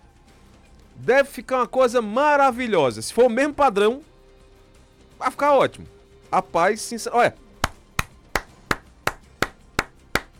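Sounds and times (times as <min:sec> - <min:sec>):
speech: 0:01.0 - 0:04.1, 0:05.2 - 0:07.4
hand clapping: 0:07.6 - 0:10.3.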